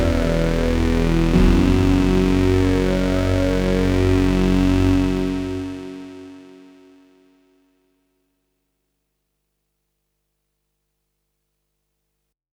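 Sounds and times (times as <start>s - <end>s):
Vox bass synth: 0.0s - 6.4s.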